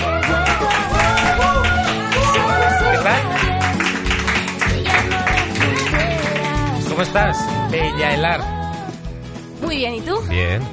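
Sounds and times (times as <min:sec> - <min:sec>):
loud sustained audience applause: 0:00.0 - 0:07.2
upbeat music: 0:00.0 - 0:10.7
speech: 0:07.0 - 0:08.6, 0:09.6 - 0:10.7.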